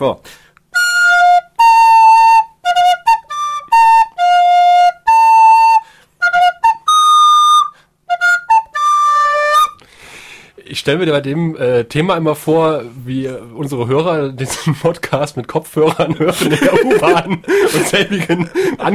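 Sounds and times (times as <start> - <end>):
speech: 0.0 - 0.4, 10.8 - 18.9
flute being played: 0.7 - 9.8
laughter: 15.4 - 18.9.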